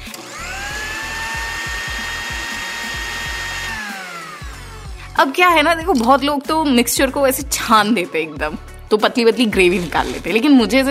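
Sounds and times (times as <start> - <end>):
mixer grinder grinding spice paste: 0.0 - 6.2, 9.6 - 10.9
speech: 5.2 - 10.9.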